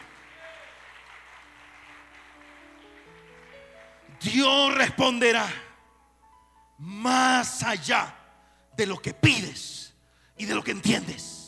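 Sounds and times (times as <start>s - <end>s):
audience clapping hands in praise: 0.0s - 4.3s
speech: 4.2s - 5.6s, 6.8s - 8.2s, 8.8s - 9.8s, 10.4s - 11.4s.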